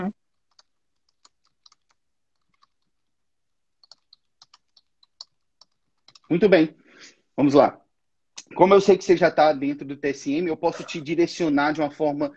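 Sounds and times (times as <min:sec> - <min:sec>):
computer keyboard typing: 0:00.2 - 0:06.4
speech: 0:06.3 - 0:07.8, 0:08.5 - 0:12.3.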